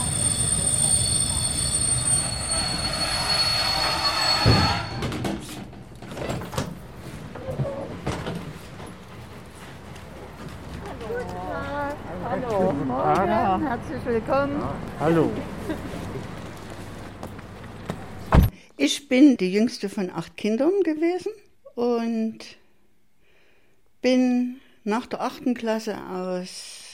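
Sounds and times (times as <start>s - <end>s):
train wheels squealing pulling into a main station: 0.0s - 5.5s
train rumbling as it slows: 0.0s - 18.3s
speech: 14.1s - 15.5s, 19.1s - 22.6s, 24.0s - 26.8s.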